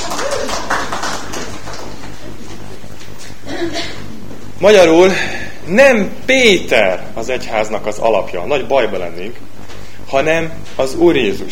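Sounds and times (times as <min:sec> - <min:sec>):
applause: 0:00.0 - 0:02.2
speech: 0:04.6 - 0:09.5, 0:10.1 - 0:11.5.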